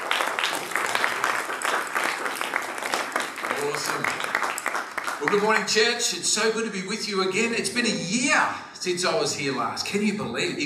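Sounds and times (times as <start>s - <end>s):
church congregation applauding to welcome a pastor: 0.0s - 6.1s
speech: 3.8s - 4.3s, 5.2s - 10.6s.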